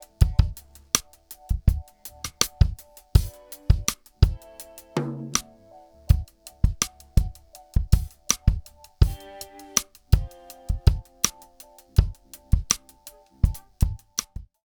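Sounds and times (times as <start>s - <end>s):
drums through Chandler Zener Limiter TG12413: 0.0s - 14.5s.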